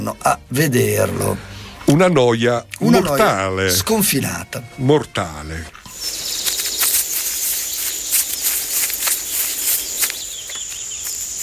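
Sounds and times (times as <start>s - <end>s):
speech: 0.0s - 5.8s
sparrow chirping: 5.9s - 11.4s.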